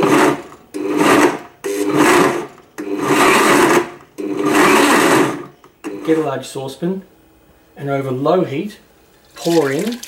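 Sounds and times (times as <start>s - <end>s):
blender grinding red chilies: 0.0s - 6.3s
speech: 6.1s - 7.1s, 7.8s - 10.0s.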